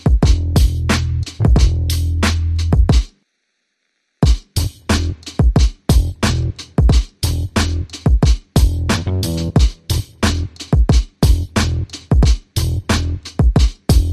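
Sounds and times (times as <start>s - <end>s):
drums: 0.0s - 3.2s, 4.2s - 14.1s
bass: 0.2s - 2.9s, 4.6s - 5.3s, 5.9s - 6.6s, 7.2s - 8.0s, 8.6s - 10.6s, 11.2s - 12.0s, 12.6s - 13.3s, 13.9s - 14.1s.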